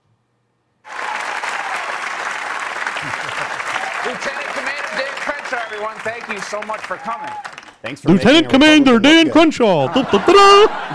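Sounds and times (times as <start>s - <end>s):
audience applause: 0.9s - 7.8s
laughter: 2.8s - 7.4s, 9.7s - 10.9s
speech: 4.0s - 10.9s.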